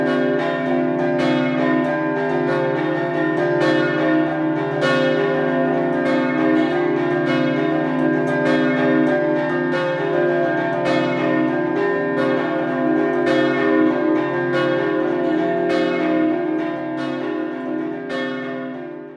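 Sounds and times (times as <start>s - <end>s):
scampanottata bells ringing in Martignacco: 0.0s - 19.1s.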